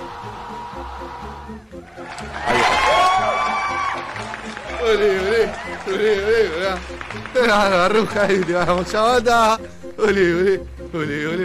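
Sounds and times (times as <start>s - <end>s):
audience cheering and whoops: 0.0s - 6.0s
audience applause: 1.8s - 9.6s
speech: 4.9s - 11.4s.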